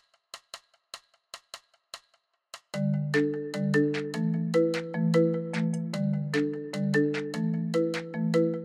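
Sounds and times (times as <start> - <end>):
virtual marimba MIDI preset in Logic playing a bouncy repeating melody: 2.8 - 8.6.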